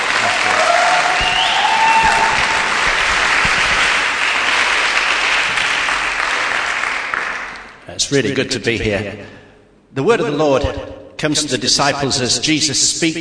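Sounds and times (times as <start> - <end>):
audience applause at a North London church gathering: 0.0 - 7.8
speech: 8.1 - 9.4, 10.0 - 13.2.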